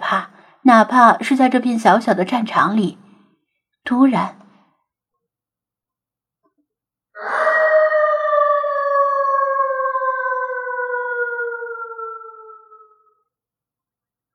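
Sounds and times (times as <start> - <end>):
speech: 0.1 - 3.0, 3.8 - 4.4
distant drawn-out wolf howl: 7.2 - 13.2.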